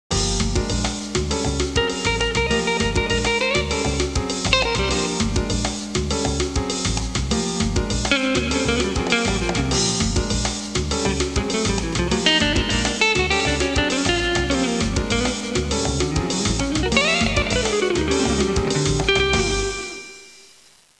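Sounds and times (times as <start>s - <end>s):
latin music: 0.1s - 20.3s.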